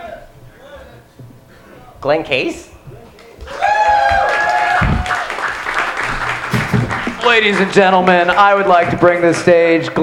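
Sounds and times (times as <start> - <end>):
speech: 2.0 - 2.7, 7.3 - 10.0
audience applause: 3.5 - 10.0.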